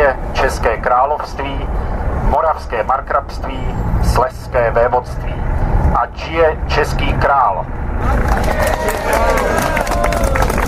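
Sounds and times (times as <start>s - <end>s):
speech: 0.2s - 9.8s
people cheering: 8.0s - 10.6s
small crowd clapping: 8.0s - 10.6s.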